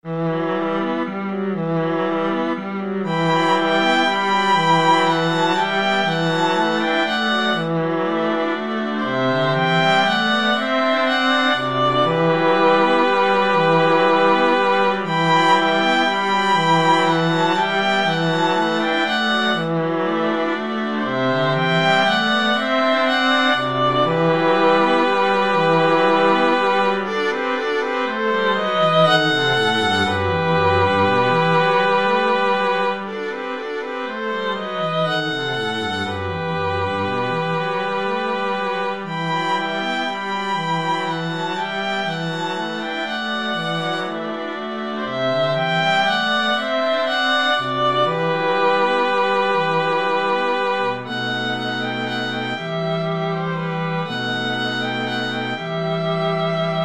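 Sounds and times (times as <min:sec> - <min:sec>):
string quartet playing Spanish dances: 0:00.0 - 0:56.8.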